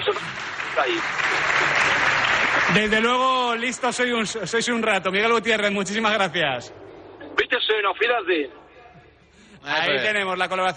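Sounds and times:
applause: 0.0s - 3.9s
speech: 0.1s - 1.5s, 2.7s - 6.8s, 7.8s - 8.6s, 9.6s - 10.7s.

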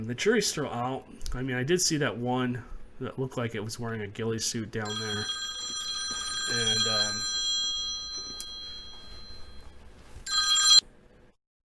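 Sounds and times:
speech: 0.0s - 5.5s, 6.5s - 7.3s
telephone ringing: 4.8s - 10.9s.

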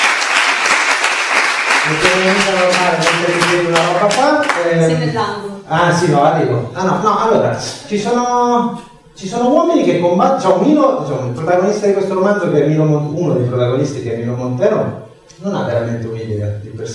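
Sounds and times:
audience applause: 0.0s - 5.0s
speech: 1.9s - 16.9s.

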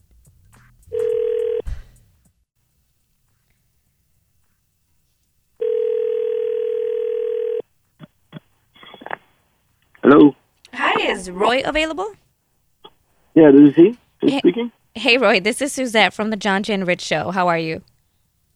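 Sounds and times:
buzzing telephone ringback tone: 0.9s - 1.7s, 5.6s - 7.6s
speech: 11.2s - 12.2s, 13.4s - 17.9s.

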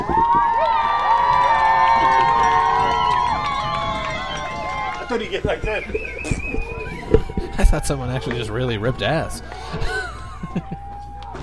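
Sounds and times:
stadium crowd cheering: 0.0s - 11.4s
laughter: 3.9s - 11.4s
speech: 5.2s - 6.4s, 7.6s - 10.8s.

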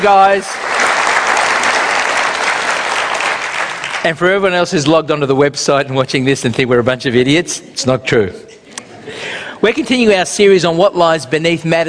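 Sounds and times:
speech: 0.0s - 0.8s, 4.0s - 8.6s, 9.6s - 11.8s
audience applause: 0.0s - 4.1s.

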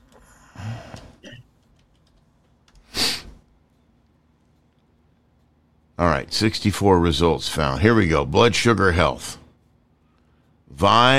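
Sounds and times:
computer keyboard keystrokes typing a search: 1.6s - 2.9s
speech: 6.0s - 9.4s, 10.8s - 11.1s.

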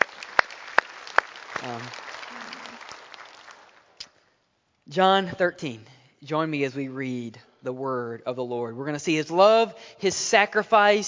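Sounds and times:
audience clapping: 0.0s - 4.1s
speech: 1.6s - 2.5s, 4.9s - 11.0s.

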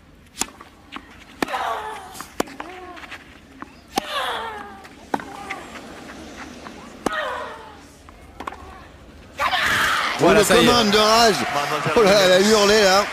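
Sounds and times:
tennis ball strikes: 0.3s - 7.5s, 8.3s - 8.6s
crowd roaring and cheering: 5.1s - 13.1s.

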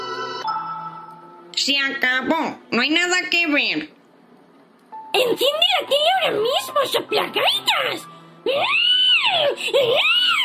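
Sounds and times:
speech: 1.6s - 4.0s, 5.2s - 10.4s
child screaming and wailing in a tantrum: 7.4s - 10.4s.

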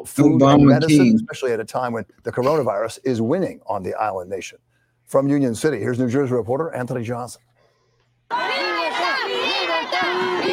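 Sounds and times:
speech: 0.0s - 7.5s
crowd shouting and chanting at a street rally: 8.3s - 10.5s.

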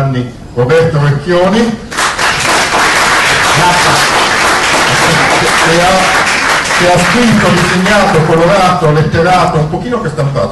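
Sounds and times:
speech: 0.2s - 1.9s, 3.6s - 4.2s, 5.0s - 6.2s, 6.8s - 10.5s
audience applause: 1.9s - 8.4s.

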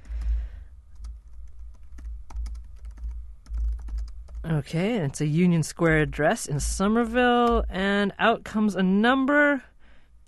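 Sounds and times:
low steady hum: 0.0s - 10.2s
typing on a laptop keyboard: 1.0s - 4.4s
speech: 4.5s - 9.7s.

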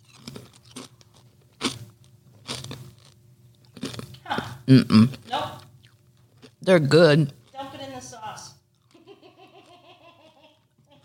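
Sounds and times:
kettle potato chips being bitten and chewed: 0.0s - 4.5s, 5.1s - 8.1s, 8.7s - 9.1s
low hum: 0.0s - 11.0s
speech: 4.3s - 5.2s, 6.6s - 7.4s.

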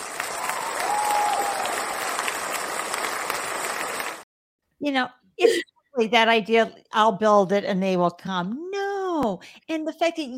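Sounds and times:
audience applause: 0.0s - 4.2s
speech: 4.8s - 10.3s.

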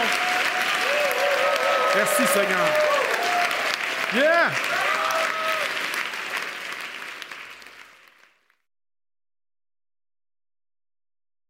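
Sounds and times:
audience applause: 0.0s - 8.6s
speech: 2.0s - 2.9s, 4.1s - 5.0s.

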